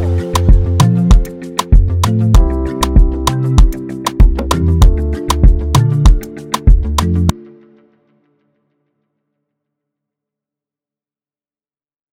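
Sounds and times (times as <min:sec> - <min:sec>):
instrumental beat in F major: 0:00.0 - 0:07.3.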